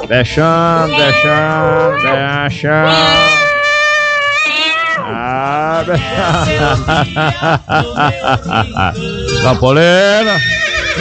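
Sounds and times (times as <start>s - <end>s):
speech: 0.0s - 3.4s, 5.1s - 10.9s
laughter: 0.0s - 3.5s, 5.0s - 10.9s
cat meowing: 0.7s - 5.3s.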